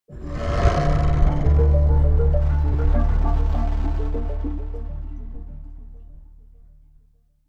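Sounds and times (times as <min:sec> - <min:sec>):
musical stinger: 0:00.2 - 0:05.9.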